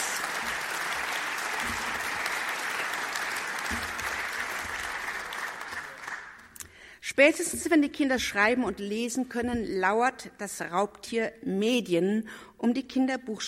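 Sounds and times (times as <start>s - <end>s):
audience applause: 0.0s - 6.5s
speech: 7.2s - 13.4s.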